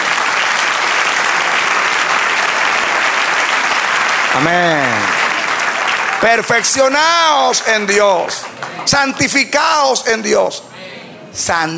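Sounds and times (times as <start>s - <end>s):
audience applause: 0.0s - 9.4s
speech: 4.4s - 5.1s, 6.2s - 10.7s, 11.4s - 11.7s.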